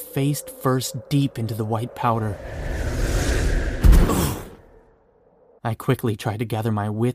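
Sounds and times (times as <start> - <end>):
speech: 0.2 - 2.9, 5.6 - 7.1
gust of wind: 0.9 - 5.6.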